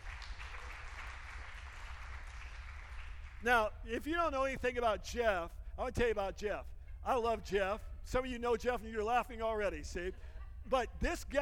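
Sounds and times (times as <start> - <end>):
audience clapping hands: 0.0 - 3.5
speech: 3.4 - 11.4.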